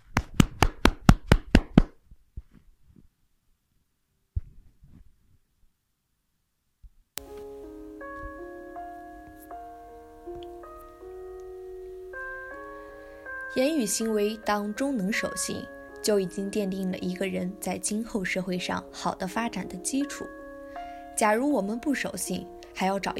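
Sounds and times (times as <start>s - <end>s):
quick claps: 0.0s - 2.0s
musical melody: 7.2s - 23.1s
speech: 13.6s - 20.4s, 21.2s - 23.1s.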